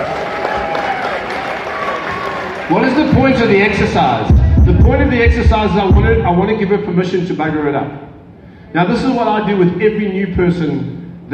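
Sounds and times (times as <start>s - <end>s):
audience round of applause: 0.0s - 4.2s
speech: 2.7s - 8.1s, 8.7s - 11.3s.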